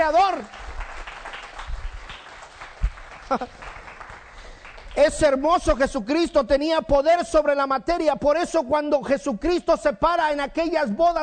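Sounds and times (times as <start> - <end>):
audience applause: 0.0 - 5.2
speech: 3.3 - 3.8, 5.0 - 11.2.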